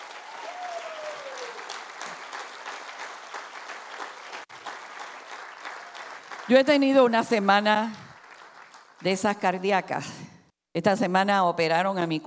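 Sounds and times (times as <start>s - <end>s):
audience applause: 0.0s - 9.2s
speech: 6.5s - 8.0s, 9.0s - 12.2s.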